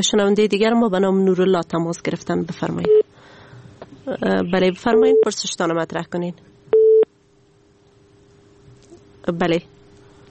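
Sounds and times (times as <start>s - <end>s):
speech: 0.0s - 3.1s, 4.0s - 6.5s, 9.2s - 9.8s
telephone busy tone after a caller's line drops: 6.8s - 7.1s.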